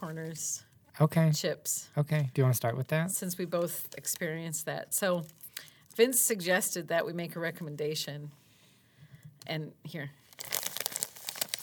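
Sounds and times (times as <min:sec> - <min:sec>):
speech: 0:00.0 - 0:05.4, 0:06.0 - 0:08.4, 0:09.4 - 0:10.2
Foley crinkling from squeezing a stack of celery: 0:10.2 - 0:11.6.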